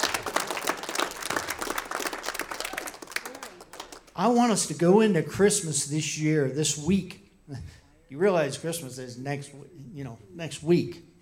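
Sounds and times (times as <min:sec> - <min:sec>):
audience clapping: 0:00.0 - 0:04.3
speech: 0:04.2 - 0:11.1.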